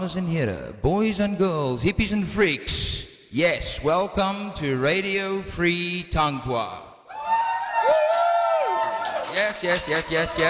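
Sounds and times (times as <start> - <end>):
speech: 0.0 - 6.9, 9.4 - 10.4
live crowd cheering and whooping: 7.1 - 10.4.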